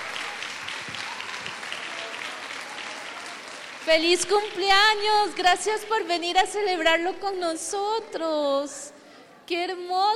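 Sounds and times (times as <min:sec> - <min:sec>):
audience applause for a birthday: 0:00.0 - 0:04.8
speech: 0:03.9 - 0:08.9, 0:09.5 - 0:10.1.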